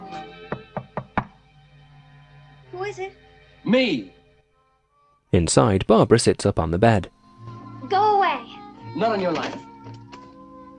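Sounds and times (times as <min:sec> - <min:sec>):
knocking on a hotel room door: 0:00.5 - 0:01.4
speech: 0:02.8 - 0:04.2, 0:05.3 - 0:07.2, 0:09.0 - 0:09.7.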